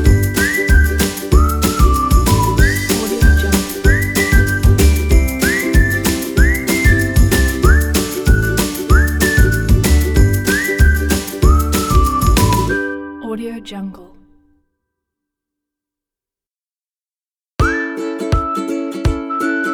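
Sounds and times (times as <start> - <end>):
folk bells: 0.0 - 8.7
folk whistle: 0.0 - 13.2, 17.6 - 19.7
folk ukulele: 0.0 - 13.5, 17.6 - 19.7.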